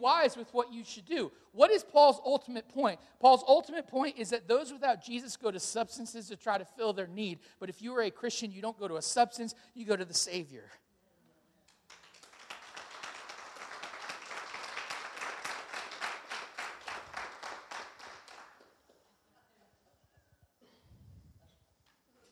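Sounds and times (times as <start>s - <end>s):
speech: 0.0s - 10.8s
audience clapping: 11.7s - 19.1s.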